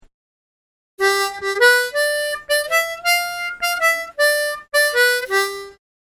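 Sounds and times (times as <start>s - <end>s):
musical lick: 1.0s - 5.8s.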